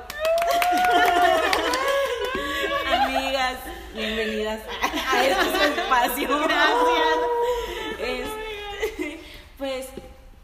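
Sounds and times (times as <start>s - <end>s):
audience applause: 0.0s - 2.8s
laughter: 0.2s - 9.2s
speech: 4.1s - 7.3s.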